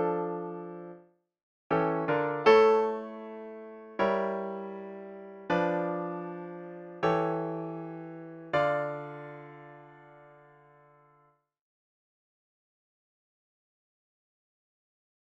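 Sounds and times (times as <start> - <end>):
piano melody: 0.0 - 1.0, 1.7 - 11.2.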